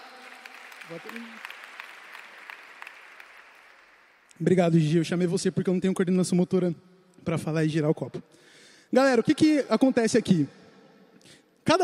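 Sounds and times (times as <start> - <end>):
audience applause: 0.0 - 4.3
speech: 0.9 - 1.6, 4.4 - 10.6, 11.3 - 11.8.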